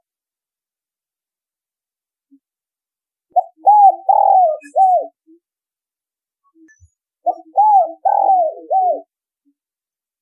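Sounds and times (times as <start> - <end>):
spotted dove cooing: 3.3 - 5.2, 7.2 - 9.1.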